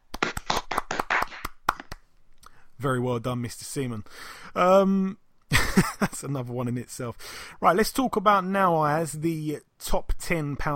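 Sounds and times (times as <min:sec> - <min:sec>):
short round of applause: 0:00.1 - 0:02.0
speech: 0:02.8 - 0:05.2, 0:05.8 - 0:10.7.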